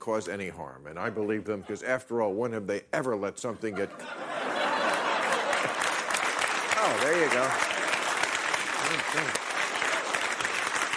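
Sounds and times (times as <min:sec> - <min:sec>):
speech: 0:00.0 - 0:04.3, 0:06.8 - 0:07.8, 0:08.8 - 0:09.4
laughter: 0:03.5 - 0:08.0
audience applause: 0:04.5 - 0:10.9.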